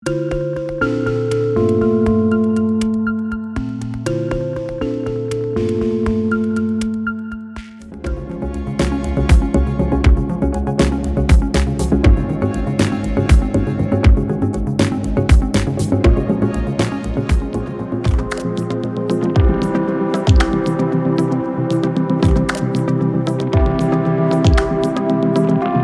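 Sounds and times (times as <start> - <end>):
minimal synth music: 0.0 - 25.8.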